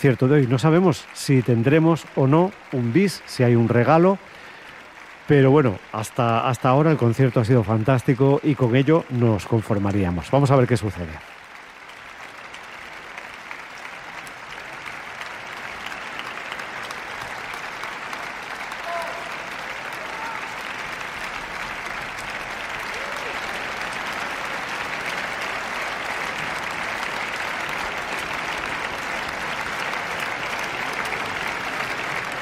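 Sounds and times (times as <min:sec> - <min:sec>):
speech: 0:00.0 - 0:04.4, 0:05.3 - 0:11.4
large concert audience applauding an orchestra: 0:00.0 - 0:32.4.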